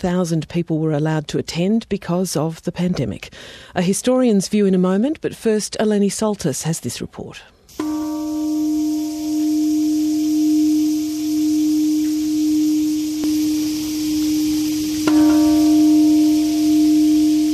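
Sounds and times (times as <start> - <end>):
speech: 0.0 - 7.9
peace bell ringing: 7.7 - 17.5
summer cicadas chirping: 7.7 - 17.5.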